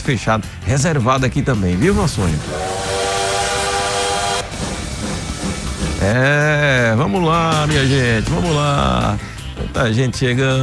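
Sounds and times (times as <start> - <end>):
speech: 0.1 - 2.8, 6.0 - 10.6
bullet train sound effect: 1.9 - 8.2.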